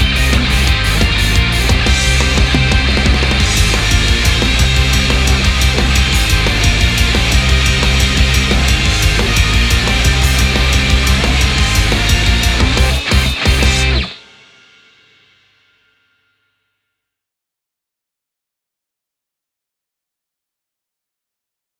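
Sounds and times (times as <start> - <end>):
instrumental music: 0.0 - 14.1.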